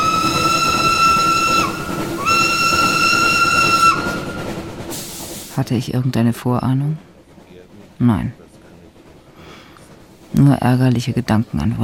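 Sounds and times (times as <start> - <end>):
train steam whistle blasts: 0.0 - 4.5
moving train rumbling on rails: 0.0 - 11.8
speech: 5.6 - 7.1, 8.0 - 8.4, 10.3 - 11.8.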